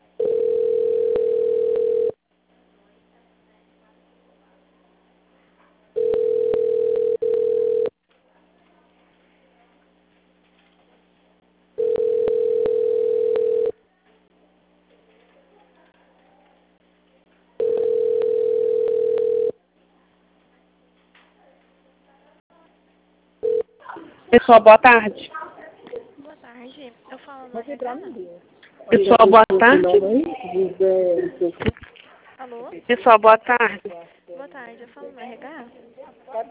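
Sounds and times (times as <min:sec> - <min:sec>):
telephone line tone during call transfer: 0:00.2 - 0:02.2, 0:06.0 - 0:07.9, 0:11.8 - 0:13.7, 0:17.6 - 0:19.6
speech: 0:24.4 - 0:25.4, 0:27.9 - 0:31.8, 0:32.6 - 0:34.1.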